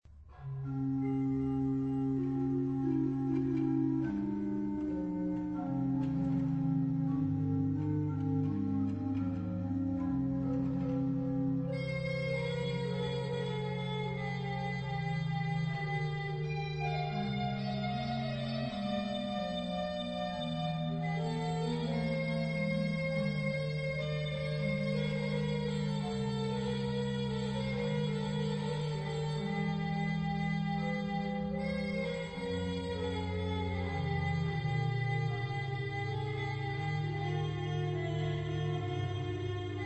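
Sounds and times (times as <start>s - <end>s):
organ playing with vox humana stop: 0.4s - 39.8s.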